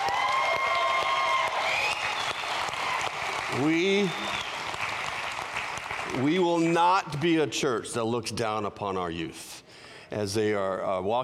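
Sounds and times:
voices shouting and whooping: 0:00.0 - 0:02.2
crowd cheering and applauding: 0:00.0 - 0:06.8
speech: 0:03.5 - 0:04.4, 0:06.1 - 0:11.2.

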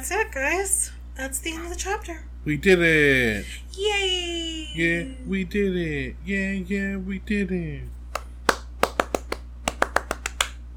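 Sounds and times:
low steady hum: 0:00.0 - 0:10.7
speech: 0:00.1 - 0:08.0
hand slapping on a knee: 0:08.1 - 0:10.6.

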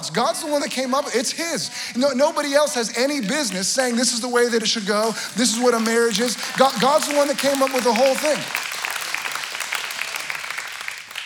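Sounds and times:
speech: 0:00.0 - 0:08.6
crowd applause: 0:03.2 - 0:11.2.

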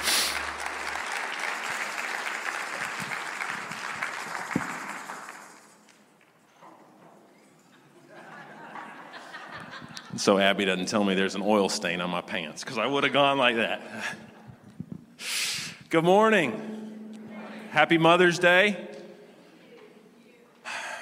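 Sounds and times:
audience applause: 0:00.0 - 0:05.9
laughter: 0:07.7 - 0:10.4
speech: 0:10.1 - 0:14.3, 0:15.9 - 0:16.8, 0:17.8 - 0:18.9.

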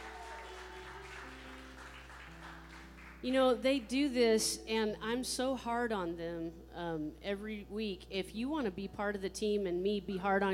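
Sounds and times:
audience applause: 0:00.0 - 0:03.2
speech: 0:03.2 - 0:10.5.

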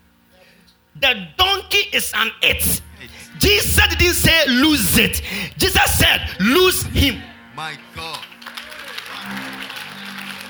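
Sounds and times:
speech: 0:01.0 - 0:08.3
crowd clapping: 0:08.0 - 0:10.4.

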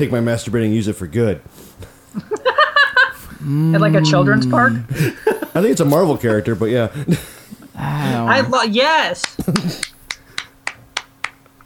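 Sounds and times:
speech: 0:00.0 - 0:02.4, 0:03.4 - 0:09.9
laughter: 0:02.2 - 0:08.6, 0:09.4 - 0:10.0
single person clapping: 0:09.2 - 0:11.6.

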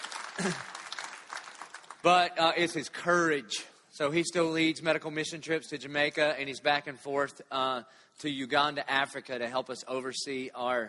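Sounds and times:
crowd clapping: 0:00.0 - 0:02.3
speech: 0:00.4 - 0:00.7, 0:02.0 - 0:10.8.

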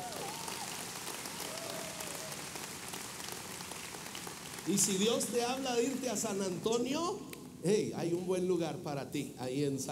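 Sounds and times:
crowd applause: 0:00.0 - 0:06.7
speech: 0:04.7 - 0:09.9.

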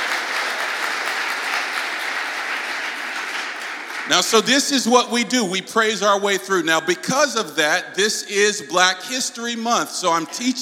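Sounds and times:
audience hand clapping: 0:00.0 - 0:04.9
speech: 0:04.1 - 0:10.5.

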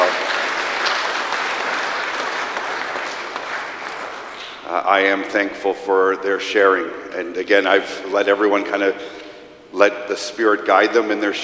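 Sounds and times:
audience applause: 0:00.0 - 0:04.6
speech: 0:04.9 - 0:09.2, 0:09.8 - 0:11.4.

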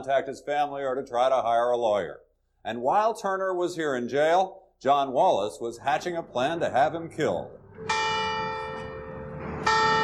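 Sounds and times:
speech: 0:00.0 - 0:08.0
courthouse clock bell striking noon: 0:07.8 - 0:10.0.

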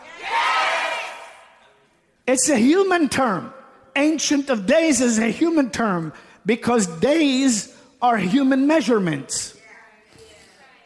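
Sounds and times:
audience shouting and cheering: 0:00.0 - 0:01.4
speech: 0:02.3 - 0:09.6.

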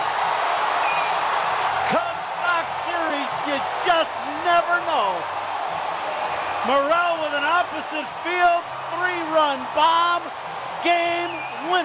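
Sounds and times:
stadium crowd cheering after home run: 0:00.0 - 0:11.8
speech: 0:01.9 - 0:02.1, 0:03.6 - 0:05.4, 0:06.6 - 0:11.8
sharp rising whistle or whoop from stadium crowd: 0:11.2 - 0:11.8.

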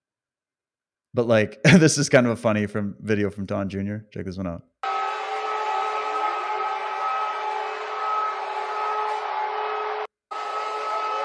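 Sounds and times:
speech: 0:01.2 - 0:04.7
air raid sirens going off: 0:04.8 - 0:11.2.

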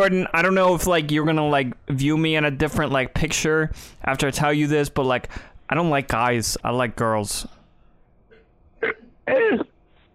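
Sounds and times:
speech: 0:00.0 - 0:07.6, 0:08.8 - 0:09.7
burp: 0:08.3 - 0:09.8.

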